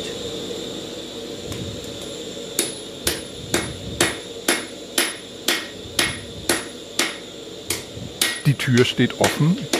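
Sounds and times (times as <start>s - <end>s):
constant roaring hiss like a gas forge: 0.0s - 9.7s
blacksmith hammering metal in a forge: 2.6s - 9.7s
speech: 8.5s - 9.7s.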